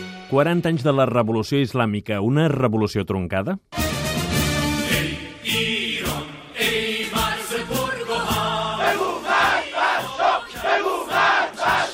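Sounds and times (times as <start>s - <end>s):
speech: 0.3s - 3.8s
crowd shouting a political chant: 4.9s - 11.9s.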